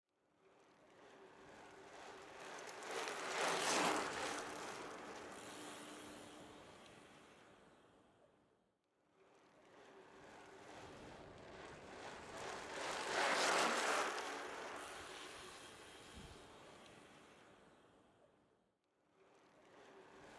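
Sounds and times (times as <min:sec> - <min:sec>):
bicycles passing: 0:00.9 - 0:07.7, 0:09.7 - 0:17.7.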